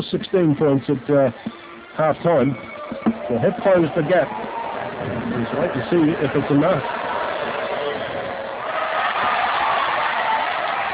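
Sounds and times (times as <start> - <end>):
speech: 0.0 - 2.7, 3.3 - 7.0
basketball crowd reacting to distract free-throw shooter: 2.8 - 10.9.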